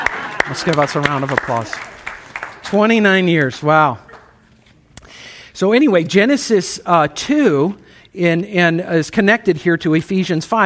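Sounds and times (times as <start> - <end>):
audience applause: 0.0 - 3.0
speech: 0.5 - 1.9, 2.7 - 4.1, 5.6 - 10.6.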